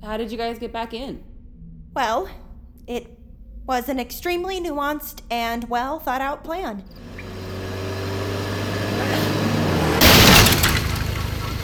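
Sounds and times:
speech: 0.0s - 1.3s, 2.0s - 7.2s
car engine rumbling: 6.8s - 11.6s
debris rattling and clattering: 7.0s - 11.6s.

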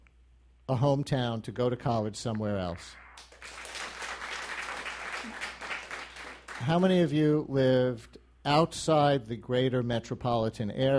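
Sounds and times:
speech: 0.7s - 3.6s, 6.6s - 10.9s
audience applause: 3.2s - 6.8s.

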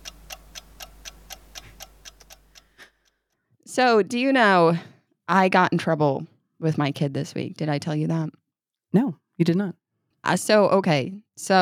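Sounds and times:
ticking timer: 0.0s - 3.3s
speech: 3.8s - 11.5s.

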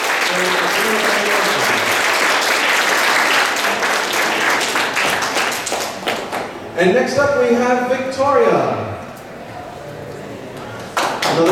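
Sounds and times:
crowd applauding: 0.0s - 6.6s, 10.8s - 11.5s
speech: 6.8s - 8.9s.

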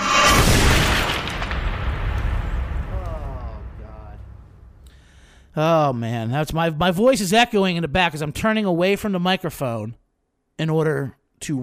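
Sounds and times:
bomb explosion sound effect: 0.0s - 5.5s
speech: 5.6s - 10.0s, 10.6s - 11.6s.

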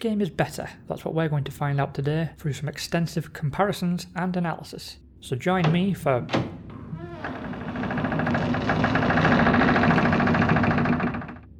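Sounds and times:
speech: 0.0s - 6.6s
loud door swinging shut: 5.6s - 11.3s.

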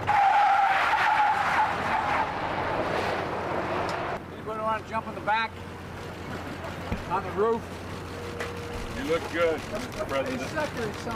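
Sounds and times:
tires skidding on a new electric Hummer being test driven in Michigan: 0.0s - 4.2s
speech: 4.9s - 5.7s, 7.1s - 7.8s, 9.1s - 11.1s.

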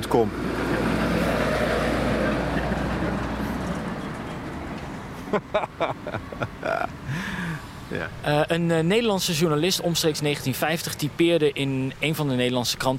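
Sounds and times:
speech: 0.1s - 0.4s, 5.3s - 12.9s
vehicle driving past: 0.2s - 5.2s
laughter: 5.2s - 7.4s.

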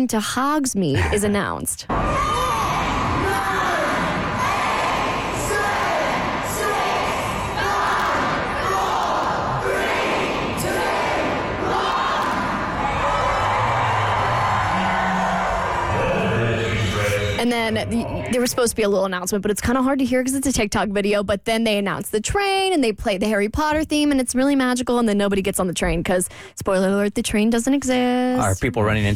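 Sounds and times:
speech: 0.0s - 2.4s, 17.4s - 29.1s
large crowd at a station chanting a countdown: 1.9s - 18.3s.

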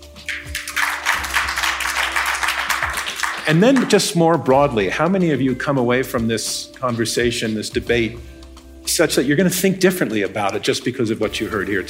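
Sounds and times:
audience applause: 0.3s - 3.9s
speech: 3.5s - 8.4s, 9.0s - 11.8s.

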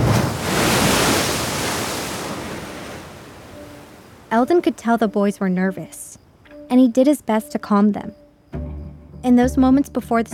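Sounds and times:
ocean waves at night: 0.0s - 5.5s
speech: 4.4s - 6.1s, 6.7s - 8.6s, 9.2s - 10.3s.

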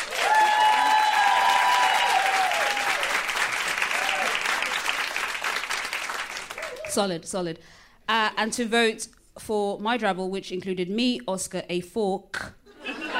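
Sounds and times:
audience clapping to vote: 0.0s - 7.0s
speech: 6.9s - 12.6s
laughter: 12.7s - 13.1s.

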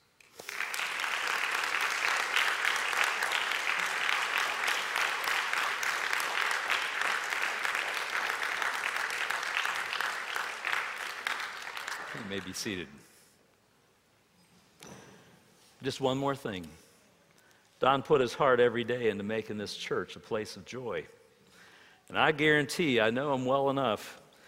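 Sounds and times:
audience applause: 0.2s - 12.6s
speech: 12.3s - 13.0s, 15.8s - 16.8s, 17.8s - 21.2s, 22.1s - 24.2s.

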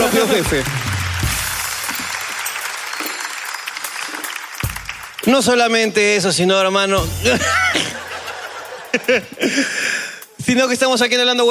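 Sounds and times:
audience applause: 0.0s - 5.6s
speech: 0.2s - 0.8s, 5.3s - 8.1s, 8.9s - 11.4s
laughter: 7.0s - 10.1s.

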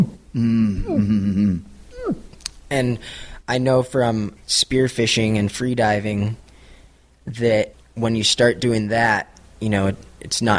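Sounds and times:
speech: 0.0s - 6.4s, 7.2s - 10.5s
person imitating involuntary breathing contractions from a long breath-hold: 0.3s - 2.3s.

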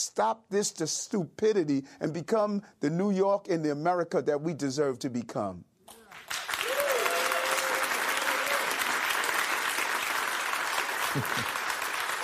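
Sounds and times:
speech: 0.0s - 6.0s, 11.1s - 11.6s
audience applause: 6.0s - 12.2s.

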